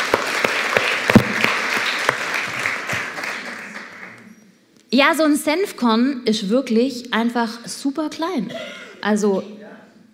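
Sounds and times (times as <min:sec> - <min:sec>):
audience applause: 0:00.0 - 0:04.3
speech: 0:04.9 - 0:09.5.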